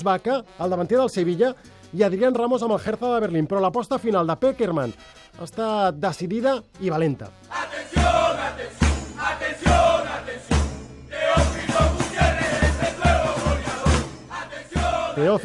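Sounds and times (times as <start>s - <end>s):
speech: 0.0s - 9.9s, 15.2s - 15.4s
football crowd chanting a song in unison: 7.5s - 15.4s
heavy regular thumping beats: 7.9s - 15.2s.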